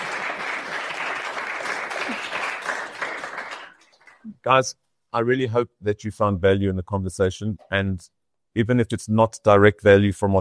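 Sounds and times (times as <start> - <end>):
audience applause: 0.0 - 4.2
speech: 4.5 - 10.3.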